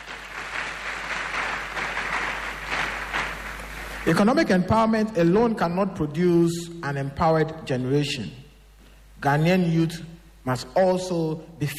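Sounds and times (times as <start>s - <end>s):
crowd applause: 0.0s - 4.1s
speech: 4.1s - 8.4s, 9.2s - 11.7s.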